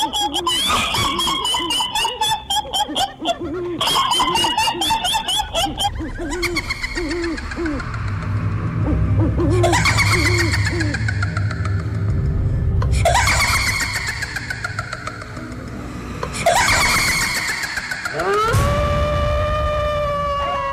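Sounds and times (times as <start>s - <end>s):
eerie ghostly giggling from a grave: 0.0s - 20.7s
low rumble: 5.3s - 13.3s.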